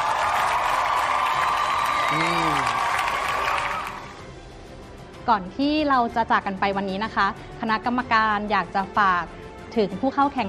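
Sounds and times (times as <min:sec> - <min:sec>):
audience applause: 0:00.0 - 0:04.2
speech: 0:02.1 - 0:02.8, 0:05.3 - 0:10.4.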